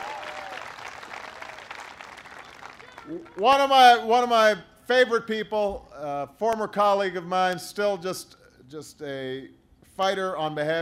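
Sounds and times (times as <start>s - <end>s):
audience applause: 0.0s - 3.6s
speech: 3.1s - 10.8s.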